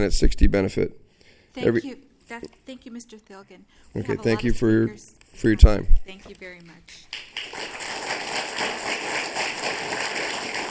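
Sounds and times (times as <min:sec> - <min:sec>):
speech: 0:00.0 - 0:09.1
audience clapping: 0:06.8 - 0:10.7.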